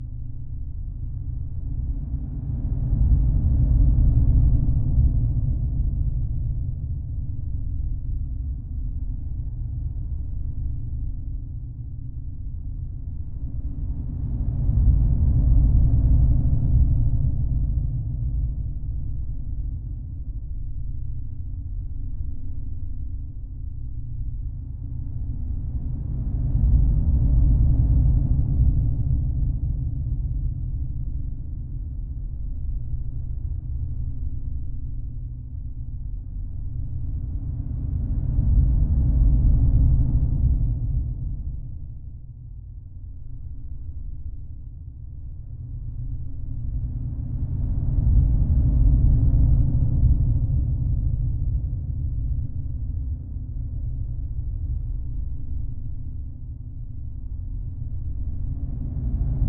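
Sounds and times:
dark ambience: 0.0s - 59.4s.

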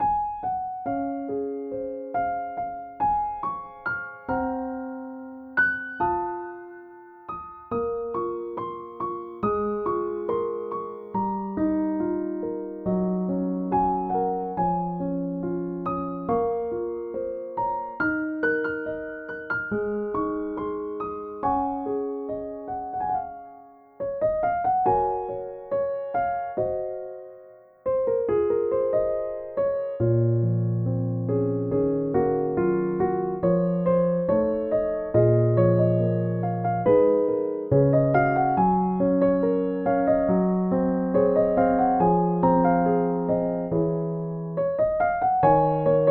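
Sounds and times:
piano: 0.0s - 46.0s.

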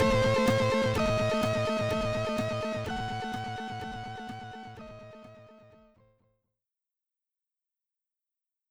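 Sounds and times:
SID chip music in stereo: 0.0s - 4.6s.

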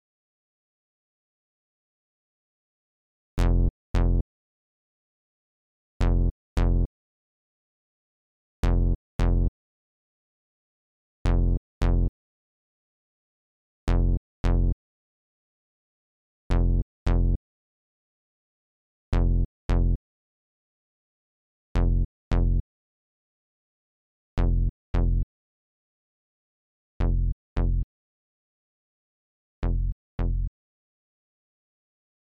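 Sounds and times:
bass: 3.4s - 4.2s, 6.0s - 6.9s, 8.6s - 9.5s, 11.3s - 12.1s, 13.9s - 14.8s, 16.5s - 17.4s, 19.2s - 20.0s, 21.8s - 22.6s, 24.4s - 25.3s, 27.0s - 27.9s, 29.6s - 30.5s.

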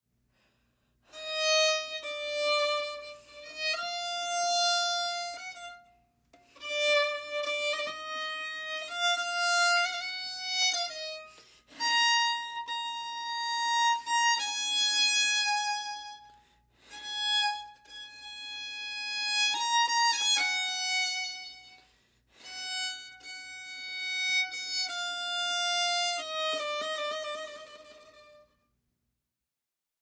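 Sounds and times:
violin: 1.1s - 28.6s.

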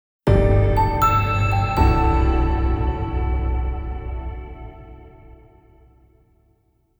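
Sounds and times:
rank up jingle: 0.3s - 5.5s.

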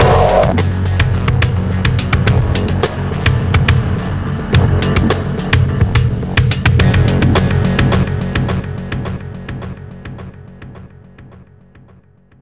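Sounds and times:
intro music stinger: 0.0s - 11.3s.

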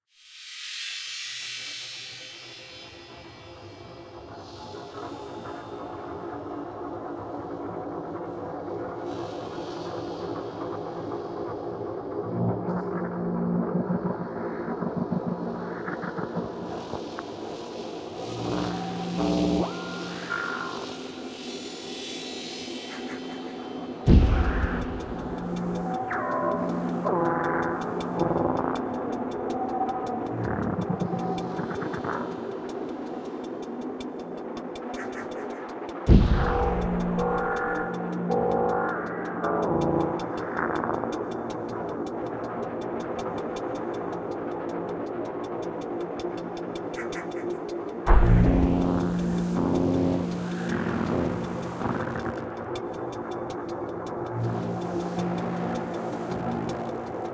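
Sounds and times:
tense background music: 4.0s - 57.3s.

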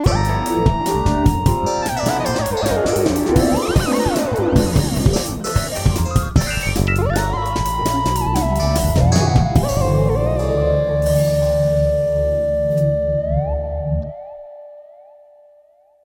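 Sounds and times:
funk music: 0.0s - 14.4s.

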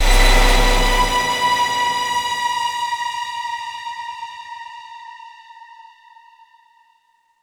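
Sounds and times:
music sting: 0.0s - 2.8s.

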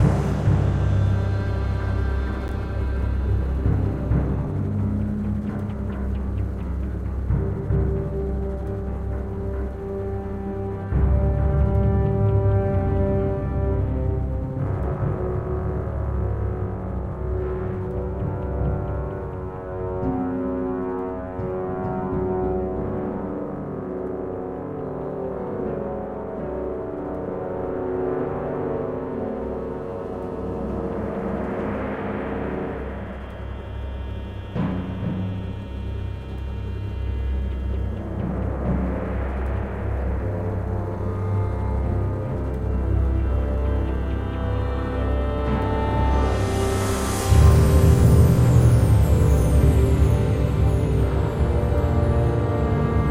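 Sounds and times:
ambient music: 0.0s - 53.0s.

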